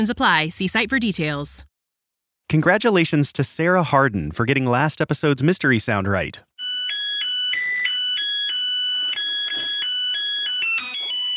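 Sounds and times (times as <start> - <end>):
speech: 0.0 - 1.7, 2.5 - 6.5
Zojirushi rice cooker beeping melody signalling the rice is ready: 6.6 - 11.3.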